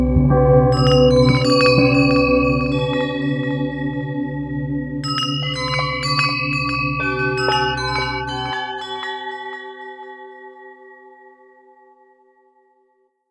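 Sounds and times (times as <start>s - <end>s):
mini gong: 0.7s - 10.7s.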